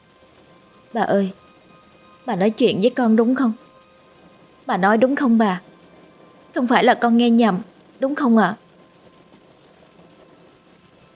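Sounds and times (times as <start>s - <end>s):
steady rain falling outdoors: 0.0s - 11.1s
speech: 0.9s - 1.4s, 2.3s - 3.6s, 4.7s - 5.7s, 6.6s - 8.6s.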